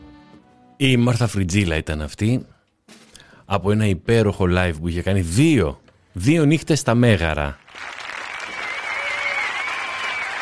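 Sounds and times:
speech: 0.8s - 2.5s, 3.5s - 7.9s
live concert audience applause at the Megaron Mousikis: 7.6s - 10.3s.

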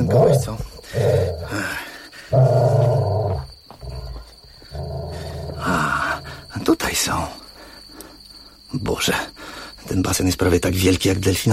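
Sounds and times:
large slobbering beast growling: 0.0s - 6.5s
speech: 0.1s - 1.1s, 9.0s - 9.3s, 9.9s - 11.5s.

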